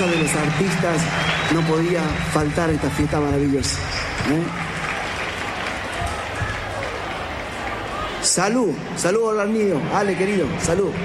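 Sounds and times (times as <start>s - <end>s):
speech: 0.0s - 4.7s, 8.2s - 11.0s
crowd applauding: 0.0s - 8.6s.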